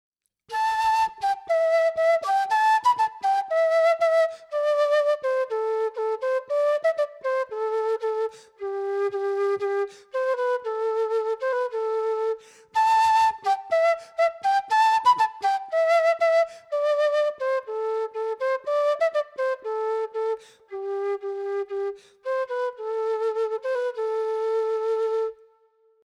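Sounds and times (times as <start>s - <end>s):
rosewood quena flute: 0.5s - 26.0s.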